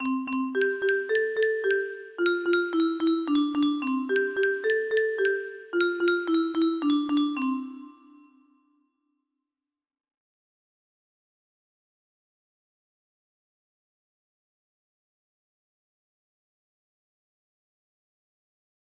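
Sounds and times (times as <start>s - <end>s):
music box: 0.0s - 8.7s.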